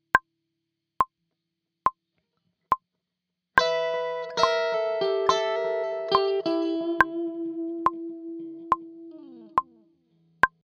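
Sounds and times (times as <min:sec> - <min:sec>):
musical lick: 0:03.6 - 0:09.8.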